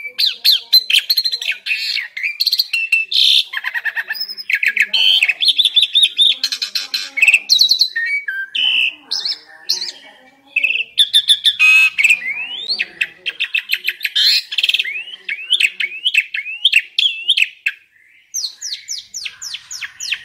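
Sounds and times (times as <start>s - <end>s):
Asian pied starling lively vigorous song with chattering and whistled slurs: 0.0s - 20.2s.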